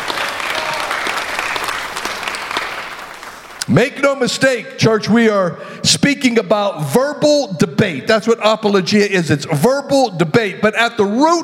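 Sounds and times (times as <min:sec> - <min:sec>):
audience hand clapping: 0:00.0 - 0:03.8
speech: 0:03.7 - 0:11.4.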